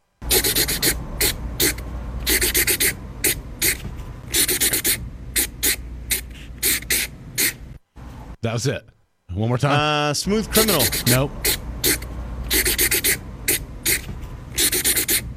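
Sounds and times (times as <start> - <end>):
faint low hum: 0.0 - 15.3
marker scratching on paper: 0.2 - 7.6, 10.6 - 15.3
speech: 8.4 - 11.5.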